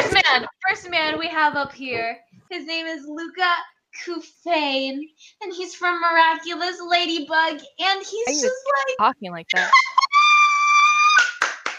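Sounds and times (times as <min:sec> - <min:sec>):
speech: 0:00.4 - 0:10.0
high-pitched held tone: 0:08.3 - 0:08.6
hand claps: 0:11.1 - 0:11.7.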